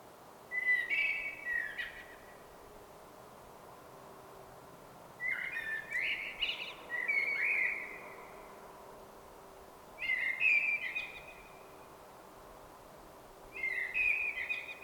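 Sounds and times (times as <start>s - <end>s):
common blackbird song in Sweden: 0.5s - 2.4s, 5.2s - 8.5s, 10.0s - 11.8s, 13.5s - 14.8s.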